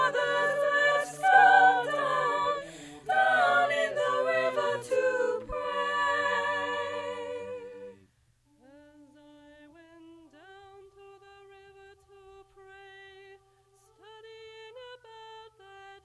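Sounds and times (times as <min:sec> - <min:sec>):
soprano singing: 0:00.0 - 0:08.0, 0:08.6 - 0:16.0.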